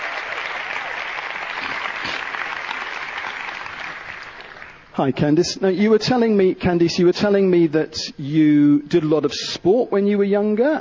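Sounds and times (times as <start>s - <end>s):
audience applause: 0.0s - 4.9s
speech: 5.0s - 10.7s.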